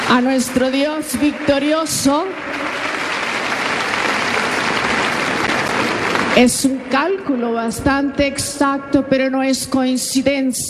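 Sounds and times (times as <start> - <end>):
audience applause: 0.0 - 6.8
speech: 0.1 - 2.8, 6.4 - 10.6.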